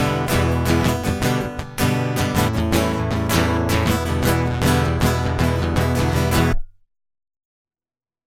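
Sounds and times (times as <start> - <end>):
guitar loop: 0.0 - 6.6.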